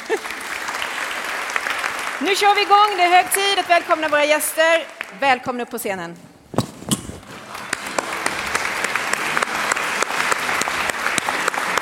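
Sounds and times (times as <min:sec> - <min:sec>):
audience applause: 0:00.0 - 0:05.2, 0:07.2 - 0:11.8
speech: 0:02.2 - 0:06.3.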